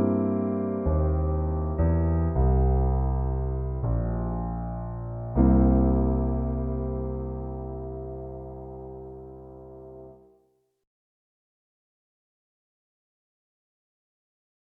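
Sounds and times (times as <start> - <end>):
slow bass: 0.0 - 10.2.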